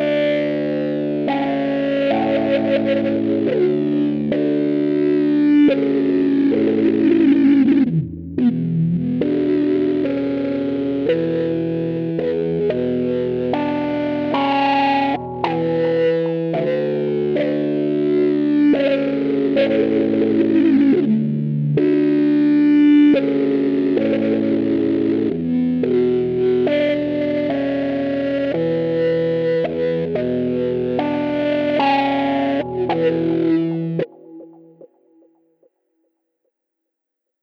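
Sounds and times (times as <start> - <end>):
processed Rhodes electric piano: 0.0 - 35.4.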